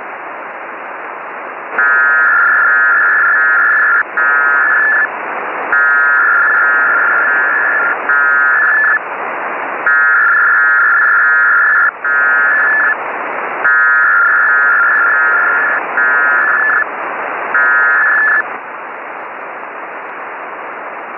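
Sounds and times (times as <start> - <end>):
Parkhill bursts on HF radio: 1.8 - 5.1, 5.7 - 9.0, 9.9 - 13.0, 13.6 - 18.6.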